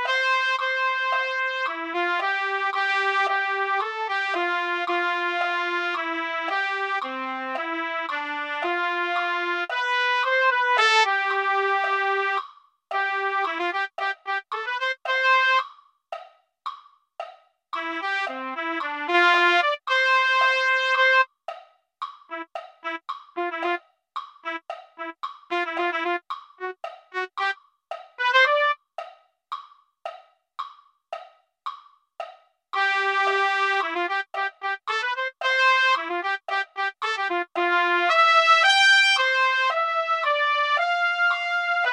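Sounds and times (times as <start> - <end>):
trumpet: 0.0 - 15.6, 17.8 - 21.3, 22.3 - 23.8, 24.4 - 27.6, 28.2 - 28.8, 32.8 - 41.9.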